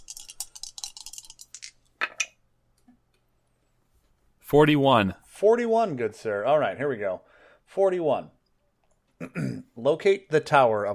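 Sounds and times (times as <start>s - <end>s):
D100 dice rattling: 0.0s - 1.8s
speech: 4.5s - 8.4s, 9.2s - 10.9s.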